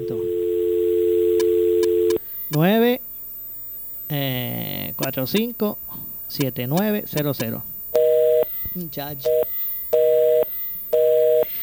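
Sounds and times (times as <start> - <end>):
speech: 0.0 - 0.3, 2.5 - 3.0, 4.1 - 7.7, 8.8 - 9.5
telephone busy signal after dialing a number: 0.0 - 2.2, 8.0 - 8.6, 9.3 - 11.6.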